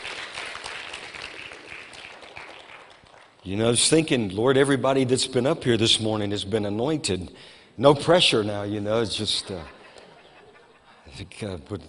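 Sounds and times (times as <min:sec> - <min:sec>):
audience applause: 0:00.0 - 0:03.4
speech: 0:03.4 - 0:09.8, 0:11.2 - 0:11.8
laughter: 0:09.3 - 0:11.1.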